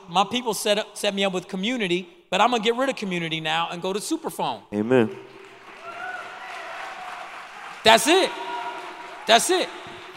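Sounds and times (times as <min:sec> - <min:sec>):
speech: 0:00.1 - 0:05.4, 0:07.8 - 0:08.5, 0:09.3 - 0:09.9
audience applause: 0:05.3 - 0:10.1
faint cheering or voices: 0:05.8 - 0:10.1.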